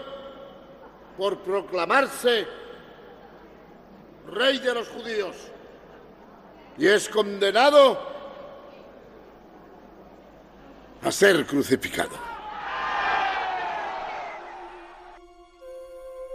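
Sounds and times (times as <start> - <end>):
speech: 1.2 - 2.6, 4.2 - 5.6, 6.8 - 8.1, 11.1 - 12.3
crowd shouting: 12.1 - 15.2.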